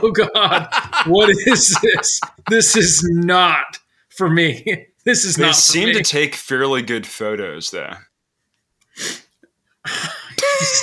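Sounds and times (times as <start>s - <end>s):
laughter: 0.0s - 3.1s, 10.4s - 10.8s
speech: 0.0s - 8.1s, 9.0s - 9.2s, 9.8s - 10.8s
hard, forceful sniff: 8.9s - 9.4s.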